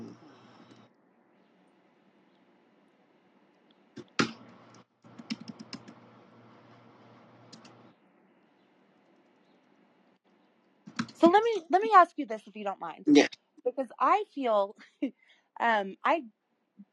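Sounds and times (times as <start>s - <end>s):
faint steady hum: 0.0s - 16.9s
typing on a computer keyboard: 4.0s - 6.0s, 7.5s - 7.8s
speech: 11.2s - 16.4s.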